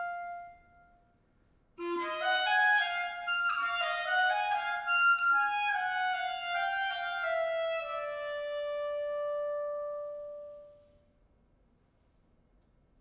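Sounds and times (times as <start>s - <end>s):
solo clarinet: 0.0s - 1.0s, 1.8s - 11.0s.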